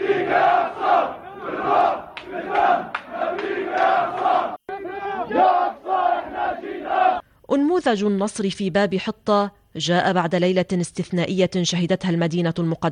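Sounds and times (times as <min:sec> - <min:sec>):
crowd chanting and shouting: 0:00.0 - 0:07.2
speech: 0:07.8 - 0:12.9.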